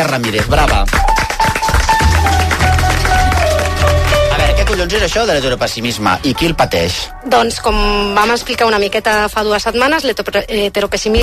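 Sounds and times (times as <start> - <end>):
speech: 0.0 - 1.1, 4.7 - 11.2
audience applause: 0.0 - 5.6.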